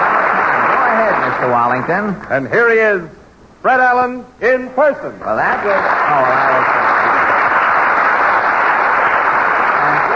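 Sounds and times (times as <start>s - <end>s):
studio audience applause: 0.0s - 2.2s, 5.3s - 10.1s
speech: 1.4s - 6.8s.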